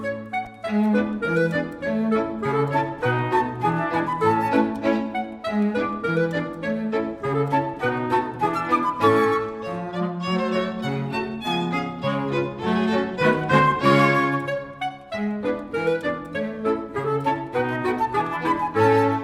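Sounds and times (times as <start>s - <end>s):
polka music: 0.0s - 19.2s.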